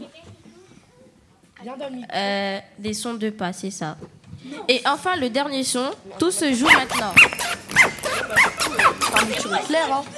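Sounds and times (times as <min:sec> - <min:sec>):
speech: 0:01.6 - 0:07.5, 0:09.3 - 0:10.1
zipper: 0:06.6 - 0:09.5.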